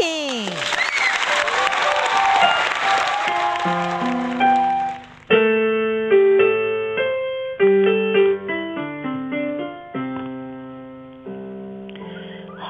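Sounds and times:
audience clapping: 0.0 - 5.3
instrumental melody: 2.2 - 12.6.

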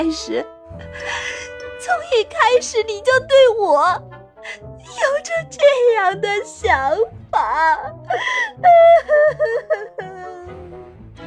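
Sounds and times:
speech: 0.0 - 10.1
man whimpering and crying in an audio drama: 8.5 - 10.7.

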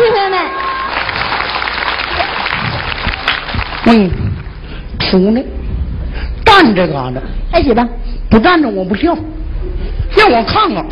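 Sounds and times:
audience applause welcoming performers: 0.2 - 4.6
speech: 3.9 - 4.2, 5.1 - 5.6, 6.5 - 9.3, 10.1 - 10.9.

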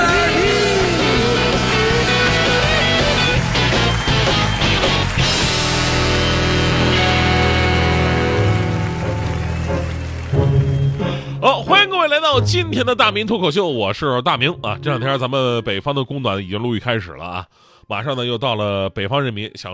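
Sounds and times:
audience applause: 0.4 - 11.4
speech: 12.4 - 19.7.

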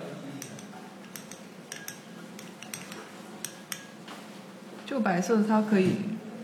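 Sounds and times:
utensil clinking against a vessel while stirring melted wax: 0.4 - 4.1
speech: 4.9 - 6.4.

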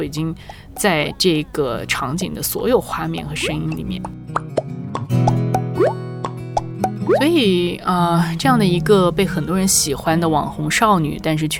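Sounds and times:
speech: 0.0 - 4.5, 7.1 - 11.5
bubble popping up sound effect: 3.7 - 7.2.

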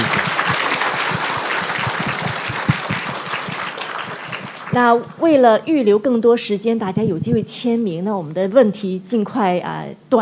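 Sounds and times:
audience clapping: 0.0 - 5.2
speech: 4.8 - 10.1.

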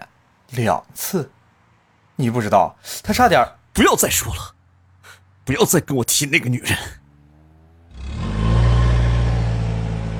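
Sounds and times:
speech: 0.5 - 1.4, 2.2 - 4.6, 5.5 - 7.0
car engine starting and car speeding off: 7.0 - 10.1.

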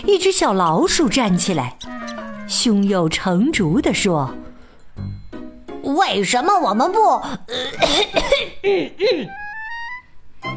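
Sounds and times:
speech: 0.0 - 5.2, 6.0 - 9.4
throat clearing: 7.8 - 9.4.

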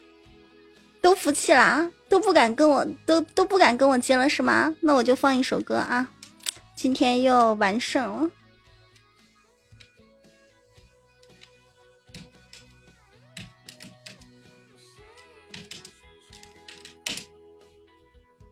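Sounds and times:
speech: 1.0 - 6.2, 6.8 - 8.4
typing on a keyboard: 13.4 - 14.3, 15.1 - 17.3.

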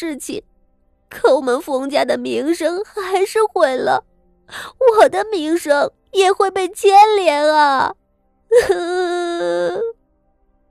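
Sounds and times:
speech: 0.0 - 0.5, 1.1 - 10.0
young woman wailing in protest: 8.5 - 9.9.

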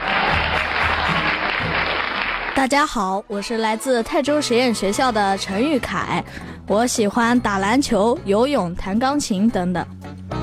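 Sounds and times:
audience applause: 0.0 - 2.7
speech: 2.6 - 10.1.

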